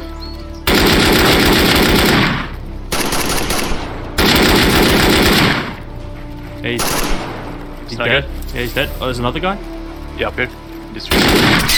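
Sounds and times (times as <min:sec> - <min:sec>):
automatic video game gunfire: 0:00.7 - 0:05.8, 0:06.8 - 0:07.6, 0:11.1 - 0:11.7
speech: 0:06.6 - 0:07.1, 0:07.9 - 0:11.7.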